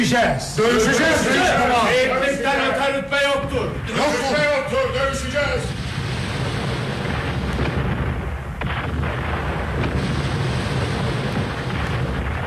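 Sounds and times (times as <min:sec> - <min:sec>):
speech: 0:00.0 - 0:05.7
cannons firing from a castle: 0:03.4 - 0:12.4.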